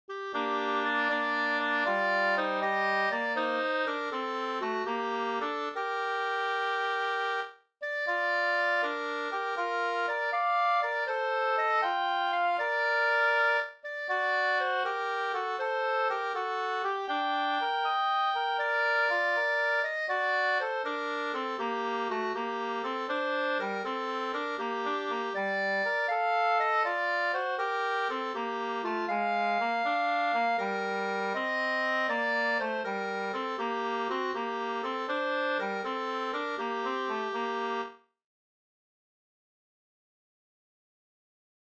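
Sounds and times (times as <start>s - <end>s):
folk song melody: 0.1s - 38.0s.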